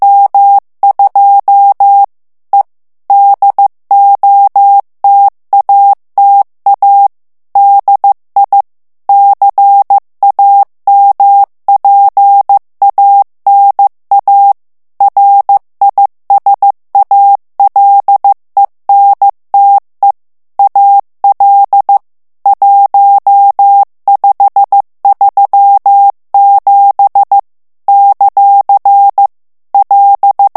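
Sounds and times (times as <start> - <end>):
morse code plain text at 14 words per minute: 0.0 - 30.5.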